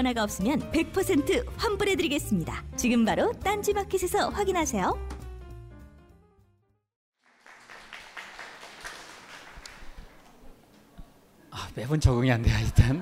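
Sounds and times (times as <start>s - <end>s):
speech: 0.0s - 5.2s, 11.8s - 13.0s
audience clapping: 7.2s - 10.6s.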